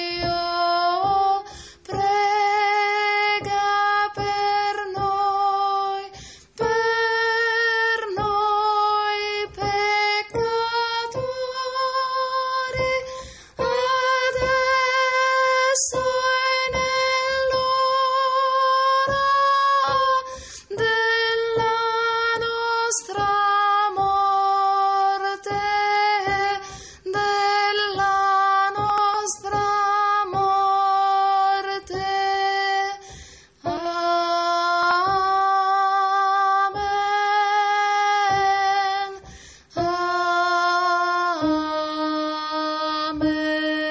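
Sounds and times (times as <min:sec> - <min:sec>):
tenors singing: 0:00.1 - 0:43.7.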